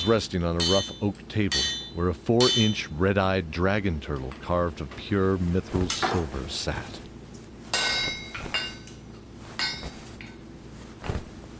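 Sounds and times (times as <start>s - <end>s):
hammer striking red-hot iron: 0.0s - 2.9s, 7.7s - 8.9s
speech: 0.0s - 7.0s.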